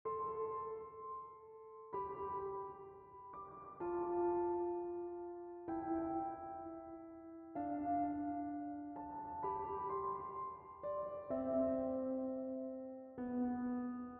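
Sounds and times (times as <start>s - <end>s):
piano: 0.0s - 14.1s.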